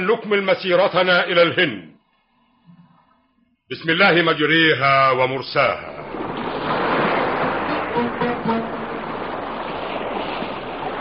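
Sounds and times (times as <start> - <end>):
speech: 0.0 - 1.9, 3.7 - 6.0
rough sea waves surging around a ship tilting at sea: 5.6 - 11.0.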